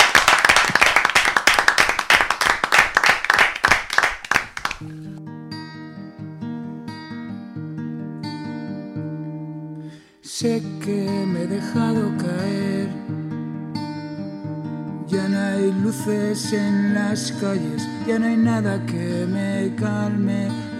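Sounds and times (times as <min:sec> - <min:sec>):
loud applause for a live music performer: 0:00.0 - 0:04.9
speech: 0:10.4 - 0:13.2, 0:15.1 - 0:20.7.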